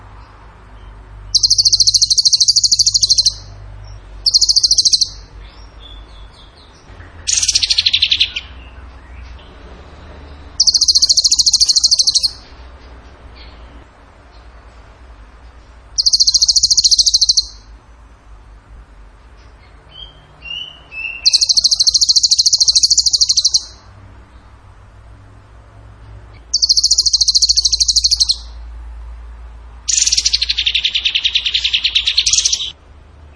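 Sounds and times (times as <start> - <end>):
bird trilling: 1.3 - 3.5, 4.2 - 8.8, 10.5 - 12.4, 16.0 - 17.7, 19.9 - 23.9, 26.4 - 28.6, 29.9 - 32.8.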